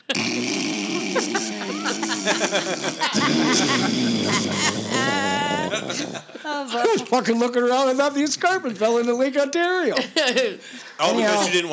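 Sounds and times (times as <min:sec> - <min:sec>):
laughter: 0:00.0 - 0:00.2, 0:00.9 - 0:07.2, 0:09.9 - 0:11.5
person imitating cartoon snore: 0:00.0 - 0:06.3
speech: 0:00.1 - 0:01.4, 0:02.3 - 0:11.7.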